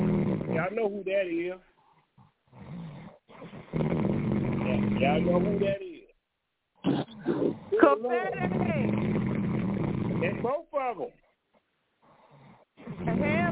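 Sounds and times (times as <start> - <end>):
pet snoring: 0.0 - 0.9, 1.8 - 5.8, 6.8 - 10.6, 12.0 - 13.4
speech: 0.6 - 1.7, 4.8 - 5.9, 6.8 - 9.1, 10.2 - 11.2.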